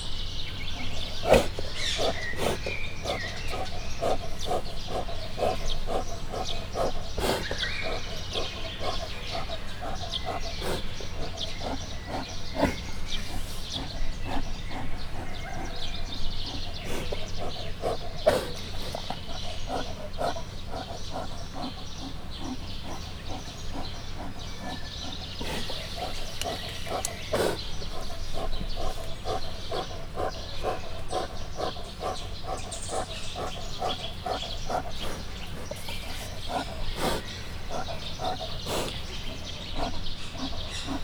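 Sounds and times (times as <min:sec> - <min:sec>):
brown bear breathing at Miskolc zoo: 0:00.0 - 0:41.0.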